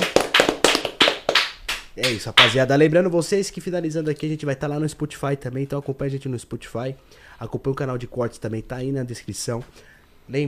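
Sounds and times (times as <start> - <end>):
hand claps: 0.0 - 2.6
speech: 2.0 - 10.4.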